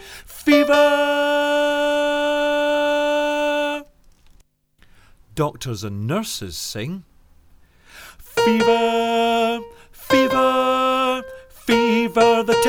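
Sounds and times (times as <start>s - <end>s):
song vocal harmonies: 0.0s - 3.9s, 8.3s - 12.6s.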